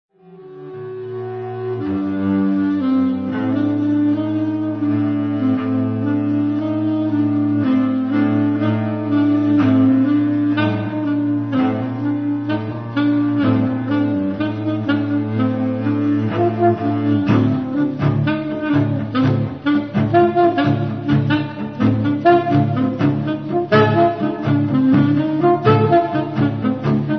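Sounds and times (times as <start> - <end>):
cello: 0.1 - 27.1.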